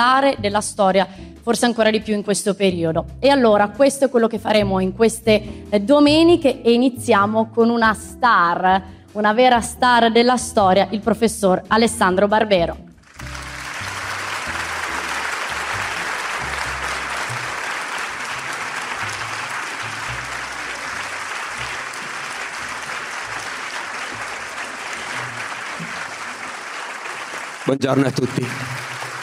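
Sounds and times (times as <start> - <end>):
speech: 0.0 - 13.3, 27.7 - 28.8
audience applause: 13.0 - 29.2.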